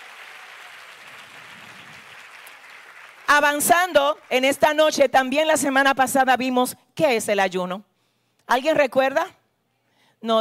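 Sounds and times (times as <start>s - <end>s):
audience applause: 0.0s - 4.4s
speech: 3.4s - 7.9s, 8.5s - 9.4s, 10.2s - 10.3s.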